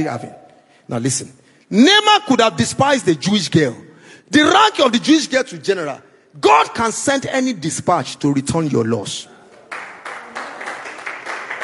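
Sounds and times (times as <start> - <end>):
speech: 0.0 - 9.3
audience clapping: 9.6 - 11.6.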